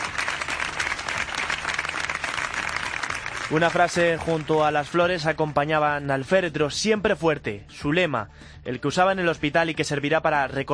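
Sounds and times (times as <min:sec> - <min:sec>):
large crowd applauding outdoors as hearse departs funeral: 0:00.0 - 0:05.6
speech: 0:03.5 - 0:10.7.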